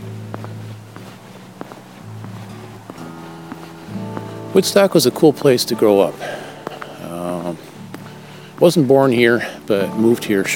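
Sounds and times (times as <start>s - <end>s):
low constant hum: 0.0s - 8.7s
medic boots walking on pavement: 0.0s - 10.5s
speech: 4.6s - 6.4s, 8.6s - 10.5s.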